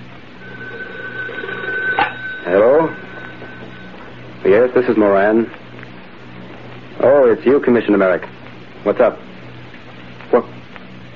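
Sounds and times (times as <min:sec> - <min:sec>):
faint hiss: 0:00.0 - 0:11.1
telephone ringing: 0:00.4 - 0:05.5
speech: 0:04.4 - 0:05.7, 0:07.0 - 0:09.2, 0:10.3 - 0:10.5.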